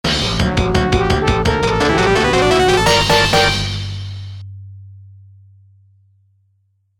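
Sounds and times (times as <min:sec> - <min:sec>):
game over music: 0:00.5 - 0:04.1.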